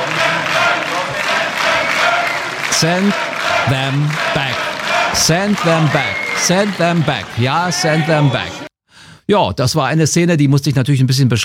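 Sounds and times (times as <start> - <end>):
crowd battle cry and bravo shouts: 0.0 - 8.7
speech: 2.8 - 8.6, 9.3 - 11.4.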